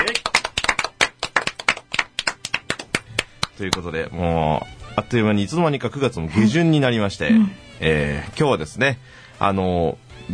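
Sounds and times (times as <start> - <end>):
hand clapping: 0.0 - 3.9
speech: 3.6 - 10.3.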